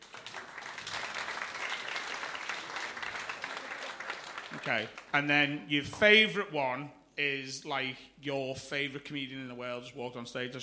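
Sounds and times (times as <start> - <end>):
audience clapping politely: 0.0 - 5.3
speech: 4.6 - 10.6.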